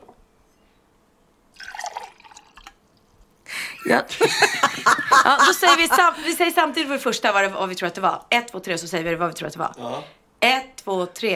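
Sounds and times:
water pouring into a glass: 0:01.6 - 0:03.0
laughter: 0:03.6 - 0:06.6
speech: 0:03.9 - 0:11.3.

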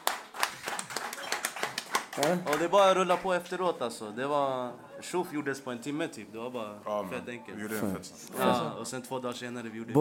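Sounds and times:
applause: 0:00.0 - 0:03.4
speech: 0:02.2 - 0:10.0.

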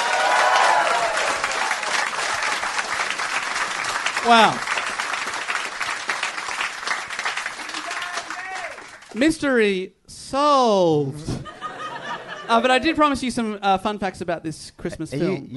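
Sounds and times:
audience applause: 0:00.0 - 0:09.2
speech: 0:04.2 - 0:04.7, 0:09.2 - 0:11.3, 0:12.5 - 0:15.5
laughter: 0:11.2 - 0:12.9.

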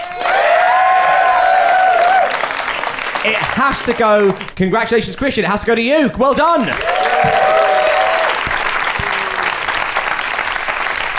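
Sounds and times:
person whooping or cheering: 0:00.0 - 0:02.4, 0:06.8 - 0:08.4
audience applause: 0:00.0 - 0:04.6, 0:06.7 - 0:11.1
speech: 0:03.2 - 0:07.7.

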